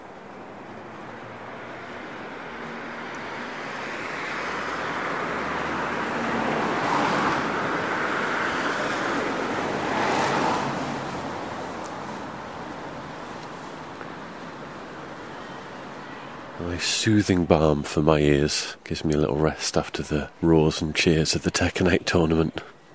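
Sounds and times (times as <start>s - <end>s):
rainfall in Edinburgh: 0.0s - 21.2s
quiet city street ambience in Edinburgh: 0.0s - 22.9s
speech: 16.6s - 22.7s.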